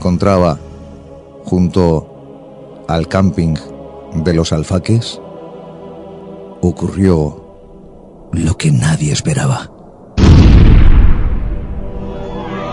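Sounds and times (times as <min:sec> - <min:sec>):
speech: 0:00.0 - 0:00.7, 0:01.5 - 0:02.1, 0:02.9 - 0:05.2, 0:06.6 - 0:07.4, 0:08.3 - 0:09.8
overloaded tanker truck explosion: 0:10.2 - 0:11.8.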